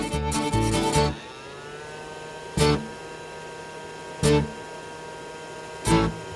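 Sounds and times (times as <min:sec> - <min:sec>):
vacuum cleaner running: 0:00.0 - 0:06.3.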